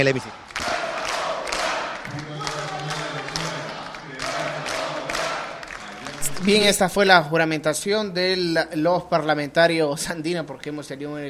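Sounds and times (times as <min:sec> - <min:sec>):
speech: 0:00.0 - 0:00.5, 0:06.4 - 0:11.2
applause from parliamentary bench members: 0:00.0 - 0:07.0.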